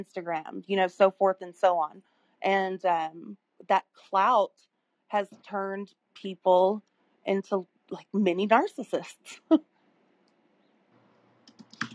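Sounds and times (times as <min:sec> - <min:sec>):
speech: 0:00.0 - 0:09.7
computer keyboard typing: 0:11.4 - 0:11.9.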